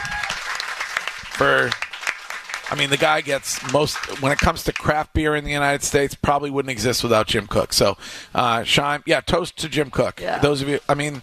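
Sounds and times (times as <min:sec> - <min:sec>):
audience applause welcoming a guest at a craft-beer gathering: 0:00.0 - 0:04.9
speech: 0:01.4 - 0:01.8, 0:02.7 - 0:11.2.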